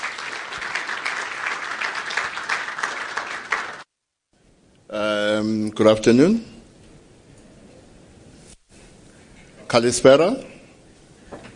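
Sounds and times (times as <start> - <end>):
applause: 0.0 - 3.9
speech: 4.9 - 6.5, 9.7 - 10.5.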